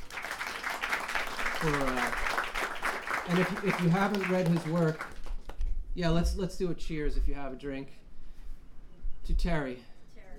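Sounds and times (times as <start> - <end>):
audience applause: 0.0 - 5.6
speech: 1.6 - 2.4, 3.2 - 5.1, 6.0 - 8.0, 9.3 - 9.9.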